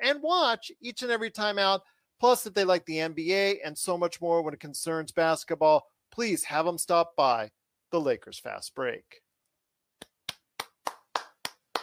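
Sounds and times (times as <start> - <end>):
speech: 0.1 - 9.2
hands clapping: 10.0 - 11.8.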